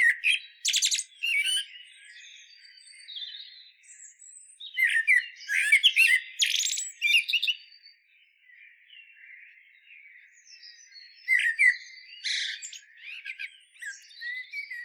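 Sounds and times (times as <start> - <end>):
common blackbird singing: 0.0 - 14.8.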